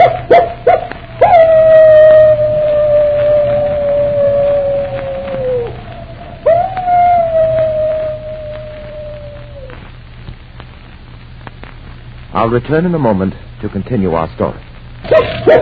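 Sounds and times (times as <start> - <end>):
wolf dog howling: 0.0 - 9.8, 15.1 - 15.6
speech: 12.4 - 15.6.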